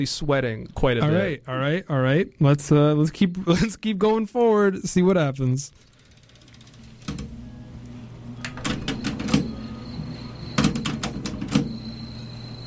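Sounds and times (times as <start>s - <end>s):
speech: 0.0s - 5.9s
tape player mechanism clunking and clicking: 6.2s - 9.7s, 10.6s - 11.8s.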